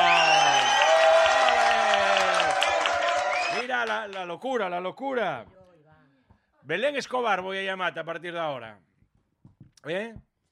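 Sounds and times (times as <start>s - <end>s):
audience applause: 0.0s - 4.3s
speech: 3.8s - 5.6s, 6.6s - 8.9s, 9.8s - 10.3s.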